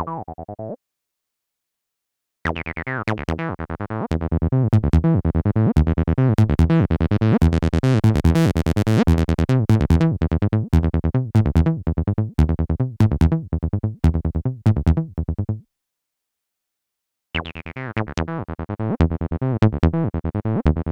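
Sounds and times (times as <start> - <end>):
TB-303 synth bassline: 2.5 - 15.5, 17.4 - 20.9.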